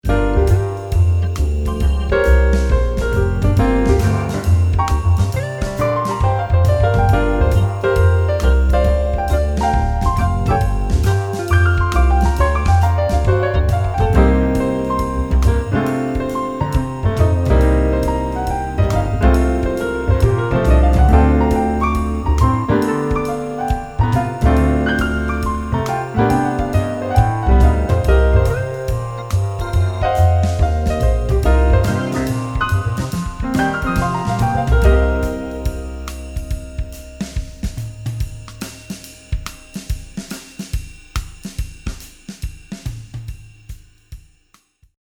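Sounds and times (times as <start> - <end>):
jazz music: 0.0 - 43.4.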